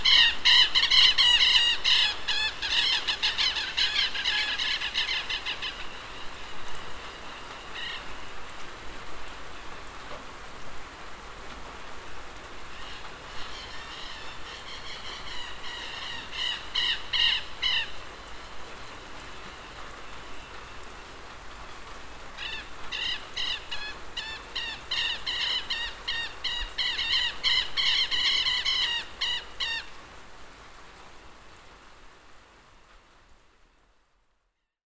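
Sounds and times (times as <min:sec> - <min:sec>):
queltehues calling in Isla de Maipo: 0:00.0 - 0:08.2, 0:12.7 - 0:18.0, 0:22.4 - 0:29.9
rain in Isla de Maipo: 0:00.0 - 0:34.8.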